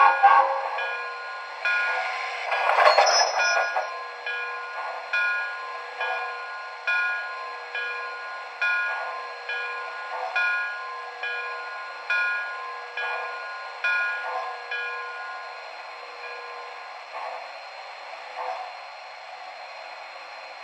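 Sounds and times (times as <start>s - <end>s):
Mikado electric trains: 0.0s - 20.6s.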